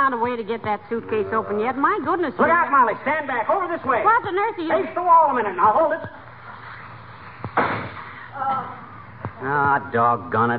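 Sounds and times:
speech: 0:00.1 - 0:06.2, 0:09.4 - 0:10.5
firecracker exploding: 0:07.5 - 0:08.2.

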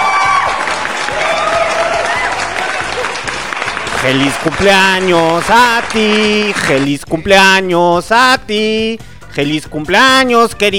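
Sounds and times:
applause: 0:00.0 - 0:06.9
speech: 0:04.0 - 0:10.7.

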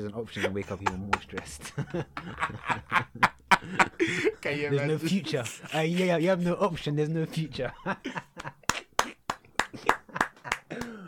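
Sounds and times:
speech: 0:00.0 - 0:08.6
laughter: 0:00.2 - 0:06.6, 0:07.3 - 0:11.0
hand clapping: 0:08.3 - 0:11.0.

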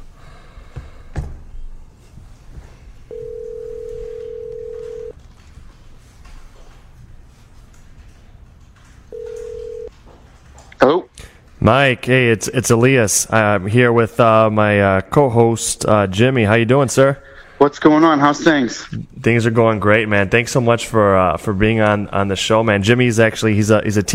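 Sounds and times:
telephone line tone as a call is placed: 0:03.1 - 0:05.2, 0:09.1 - 0:09.9
speech: 0:11.7 - 0:24.1.

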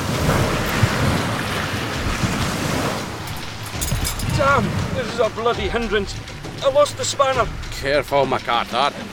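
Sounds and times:
stormy sea waves: 0:00.0 - 0:07.6
wind: 0:00.0 - 0:09.1
speech: 0:04.5 - 0:09.1.

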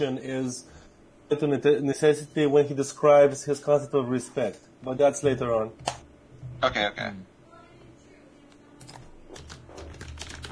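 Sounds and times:
speech: 0:00.0 - 0:06.0, 0:06.6 - 0:07.3
low hum: 0:00.0 - 0:10.4
light typing on a computer keyboard: 0:08.8 - 0:10.4.

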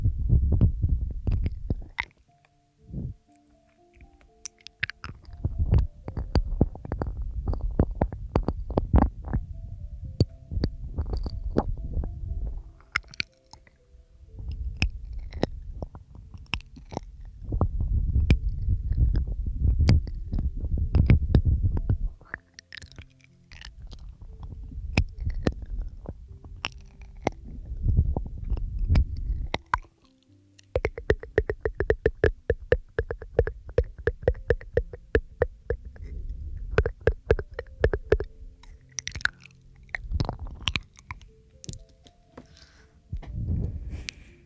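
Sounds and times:
soft low thumps: 0:00.0 - 0:02.0, 0:02.8 - 0:03.2, 0:05.0 - 0:13.0, 0:14.0 - 0:22.3, 0:23.7 - 0:29.7, 0:30.8 - 0:39.2, 0:39.8 - 0:40.8, 0:43.1 - 0:44.3
faint steady hum: 0:00.0 - 0:44.4
wet mouth clicks, smacks and chewing: 0:00.4 - 0:02.1, 0:04.4 - 0:13.8, 0:14.4 - 0:29.9, 0:30.6 - 0:41.9.

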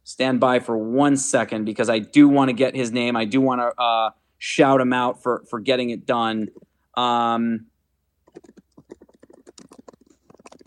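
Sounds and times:
speech: 0:00.1 - 0:07.7
typing on a computer keyboard: 0:08.3 - 0:10.6.

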